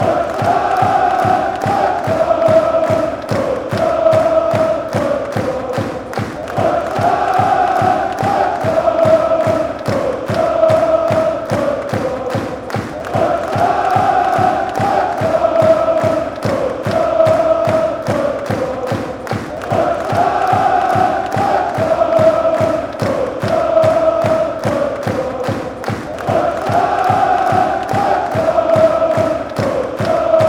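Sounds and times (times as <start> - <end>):
football fans chanting: 0.0 - 30.4.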